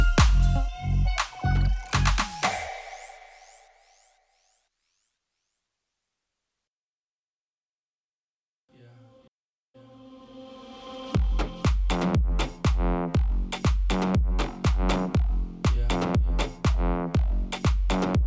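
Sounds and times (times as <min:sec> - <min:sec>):
cool ambient music mix: 0:00.0 - 0:04.2, 0:09.8 - 0:18.2.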